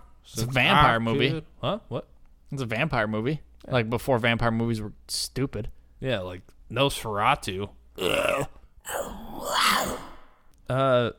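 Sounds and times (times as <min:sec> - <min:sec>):
speech: 0:00.3 - 0:09.2, 0:10.7 - 0:11.1
big cat roaring: 0:08.0 - 0:10.2.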